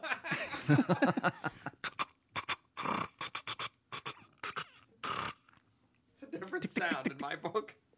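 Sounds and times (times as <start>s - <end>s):
laughter: 0.0s - 1.8s, 6.5s - 7.4s
speech: 0.7s - 1.6s
person imitating loud keyboard typing: 1.8s - 5.4s, 6.6s - 7.4s.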